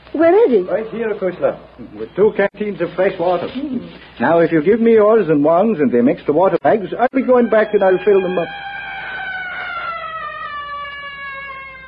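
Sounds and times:
speech: 0:00.2 - 0:08.7
hunting leopard crying: 0:07.1 - 0:11.8.

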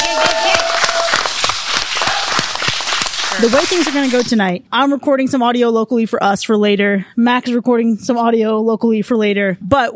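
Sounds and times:
live audience applause: 0:00.0 - 0:04.2
speech: 0:03.4 - 0:09.9.

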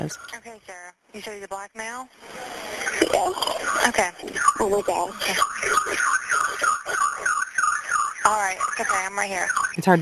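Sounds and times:
home alarm with shrill warbling electronic tone: 0:00.0 - 0:00.5, 0:02.5 - 0:09.9
speech: 0:00.0 - 0:06.2, 0:08.3 - 0:09.9.

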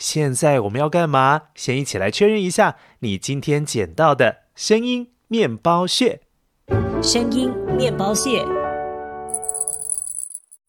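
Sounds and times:
speech: 0:00.0 - 0:08.6
small cat collar bell jingling: 0:09.3 - 0:10.6.

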